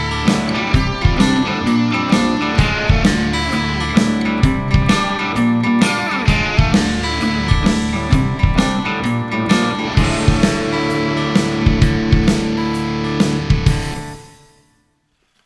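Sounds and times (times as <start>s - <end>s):
dissonant music without bass: 0.0s - 14.4s.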